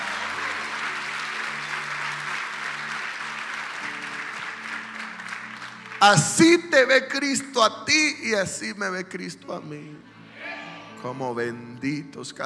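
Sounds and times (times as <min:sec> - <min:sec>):
church audience applauding: 0:00.0 - 0:07.2
speech: 0:06.0 - 0:10.1, 0:11.0 - 0:12.4.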